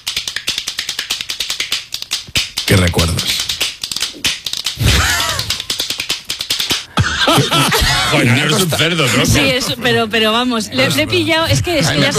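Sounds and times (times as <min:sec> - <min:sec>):
plastic toy hand clapper shaken side to side: 0:00.0 - 0:06.9
speech: 0:02.7 - 0:03.5, 0:07.3 - 0:12.1
laughter: 0:04.8 - 0:05.6, 0:06.9 - 0:12.1.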